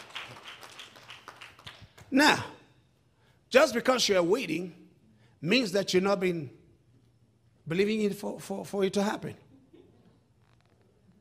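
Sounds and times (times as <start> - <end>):
audience clapping: 0.0 - 2.2
speech: 2.1 - 2.5, 3.5 - 4.8, 5.4 - 6.6, 7.7 - 9.4.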